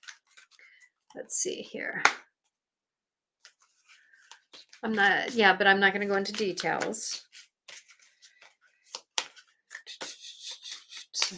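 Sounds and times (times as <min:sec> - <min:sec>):
speech: 0:01.2 - 0:02.3, 0:04.8 - 0:07.3
playing card drawn from a deck: 0:08.9 - 0:11.3.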